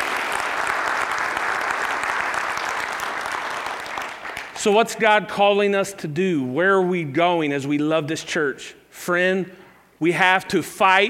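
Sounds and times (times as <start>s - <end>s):
audience applause: 0.0s - 4.6s
speech: 4.6s - 11.0s.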